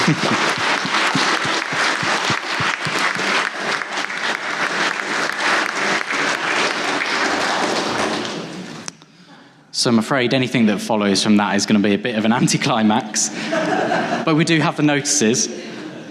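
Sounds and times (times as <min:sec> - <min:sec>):
laughter: 0:00.0 - 0:04.1, 0:13.3 - 0:14.5, 0:15.4 - 0:16.1
audience applause: 0:00.0 - 0:08.8
speech: 0:00.1 - 0:00.6, 0:09.8 - 0:15.7.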